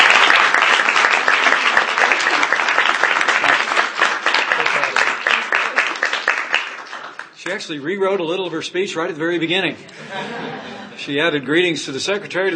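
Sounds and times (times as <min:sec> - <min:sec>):
round of applause: 0:00.0 - 0:07.7
speech: 0:07.5 - 0:12.5
laughter: 0:09.8 - 0:12.5.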